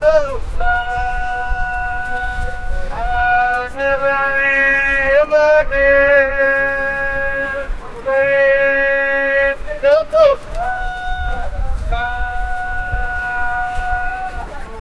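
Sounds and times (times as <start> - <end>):
bustling old Arab market crowd: 0.0 - 14.8.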